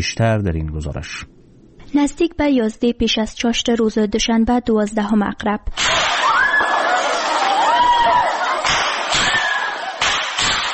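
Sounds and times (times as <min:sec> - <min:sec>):
speech: 0:00.0 - 0:06.0
students screaming during an armed attack on Kabul University: 0:05.8 - 0:10.3
crowd commotion: 0:05.8 - 0:10.7.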